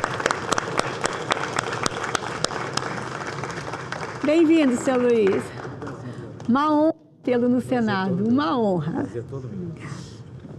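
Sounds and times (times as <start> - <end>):
applause welcoming guests in the Brazilian Senate: 0.0 - 6.5
speech: 4.3 - 5.6, 6.5 - 10.0.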